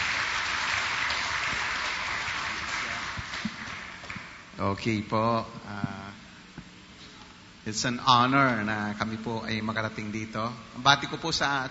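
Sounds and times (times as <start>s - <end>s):
audience applause: 0.0s - 4.4s
speech: 4.6s - 5.9s, 7.7s - 11.6s.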